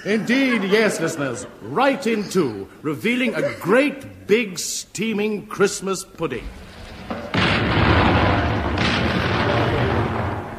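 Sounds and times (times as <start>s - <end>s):
laughter: 0.0s - 4.0s
speech: 0.0s - 7.7s
artillery guns of an artillery regiment firing over open sights: 6.6s - 10.5s.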